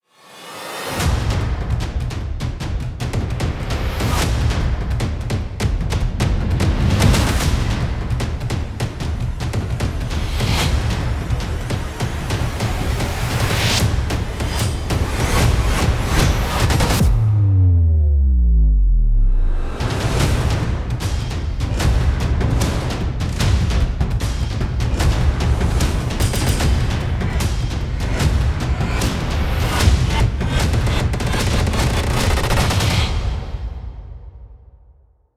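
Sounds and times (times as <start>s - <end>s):
action trailer music: 0.3s - 35.0s.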